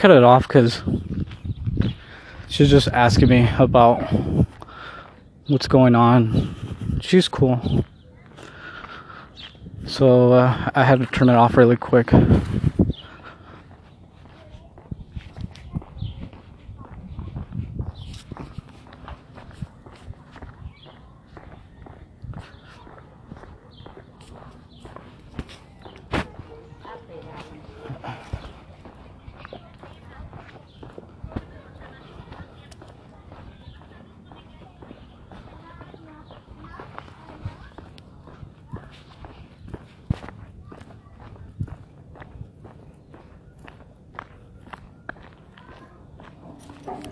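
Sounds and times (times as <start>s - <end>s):
speech: 0.0s - 1.1s, 1.8s - 4.4s, 5.5s - 7.9s, 9.8s - 12.8s
footsteps of a person walking: 12.1s - 47.0s.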